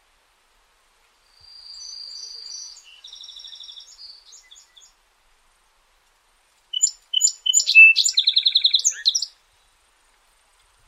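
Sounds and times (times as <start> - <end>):
song sparrow song: 1.4 - 5.0, 6.7 - 9.8.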